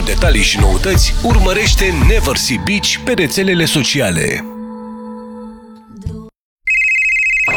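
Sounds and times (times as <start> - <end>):
speech: 0.1 - 4.5
phone ringing with a high-pitched electronic tone: 6.7 - 7.5.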